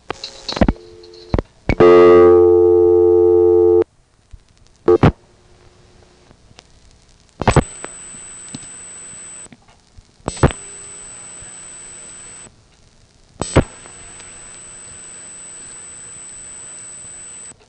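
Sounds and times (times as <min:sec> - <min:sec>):
thin high whine: 0:00.0 - 0:03.8, 0:07.4 - 0:09.5, 0:10.3 - 0:12.5, 0:13.4 - 0:17.6
telephone line noise: 0:00.0 - 0:17.6
telephone exchange busy signal of the Broadway Timberville office: 0:00.8 - 0:03.8.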